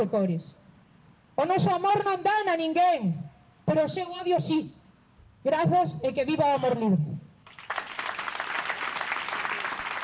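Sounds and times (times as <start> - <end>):
speech: 0.0 - 0.6, 1.4 - 4.8, 5.4 - 7.1
long applause: 7.5 - 10.0.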